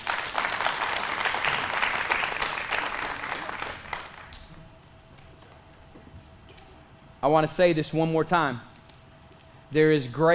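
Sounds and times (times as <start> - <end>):
audience applauding: 0.0 - 4.5
speech: 7.2 - 8.7, 9.7 - 10.3.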